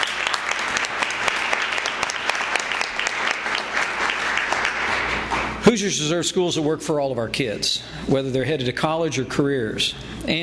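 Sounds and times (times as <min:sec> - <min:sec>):
audience applause: 0:00.0 - 0:05.6
speech: 0:05.7 - 0:10.4.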